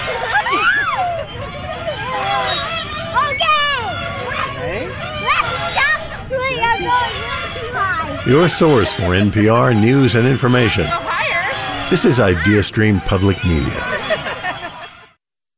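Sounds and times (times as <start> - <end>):
laughter: 0.0 - 3.0, 8.2 - 15.2
creaking playground swing set: 0.0 - 15.1
speech: 8.3 - 11.0, 11.9 - 14.1.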